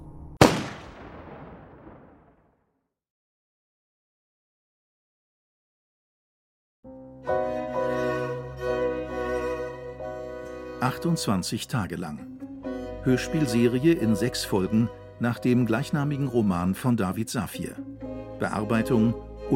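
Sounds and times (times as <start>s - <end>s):
gunshot: 0.4s - 2.6s
music: 6.8s - 19.5s
speech: 10.8s - 12.4s, 13.0s - 19.5s.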